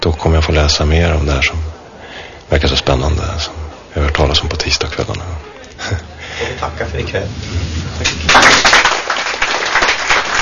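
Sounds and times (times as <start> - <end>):
speech: 0.0 - 1.7, 2.5 - 9.0
audience applause: 8.0 - 10.4.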